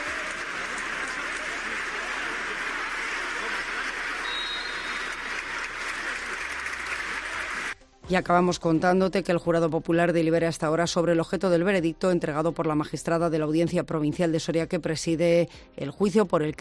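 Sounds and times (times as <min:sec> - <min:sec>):
large indoor sports hall crowd clapping: 0:00.0 - 0:07.8
speech: 0:08.1 - 0:16.5.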